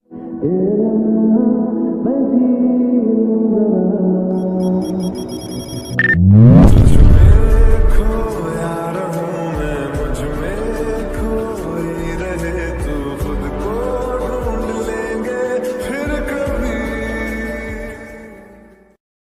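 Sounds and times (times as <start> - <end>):
Hindi lofi song ringtone: 0.4 - 16.9.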